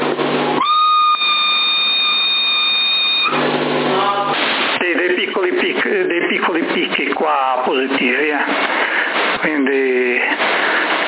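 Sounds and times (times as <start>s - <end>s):
high steady whistle over CB radio: 0.6s - 3.4s
hiss of a CB radio carrier: 3.9s - 11.0s.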